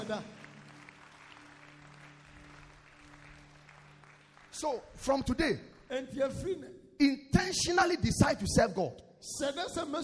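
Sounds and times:
audience clapping: 0:00.0 - 0:06.3
speech: 0:00.1 - 0:00.4, 0:04.6 - 0:10.0.

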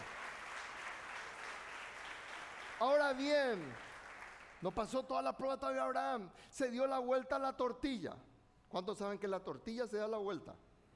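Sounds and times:
audience applause: 0:00.0 - 0:04.6
speech: 0:02.8 - 0:03.9, 0:04.6 - 0:10.7.

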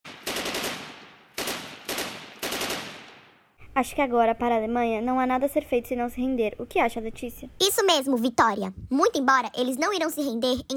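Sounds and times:
artillery gunfire: 0:00.0 - 0:03.4
speech: 0:03.8 - 0:10.7.

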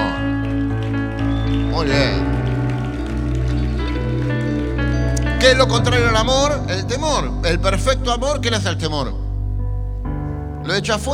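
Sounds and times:
steady applause from a crowd: 0:00.0 - 0:07.0
low sustained musical tone: 0:00.0 - 0:11.1
speech: 0:01.8 - 0:02.3, 0:05.4 - 0:09.2, 0:10.7 - 0:11.1.

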